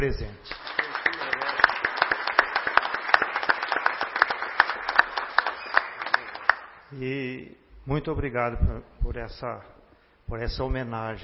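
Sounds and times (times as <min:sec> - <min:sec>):
speech: 0:00.0 - 0:00.8, 0:06.9 - 0:11.2
audience applauding: 0:00.5 - 0:06.9.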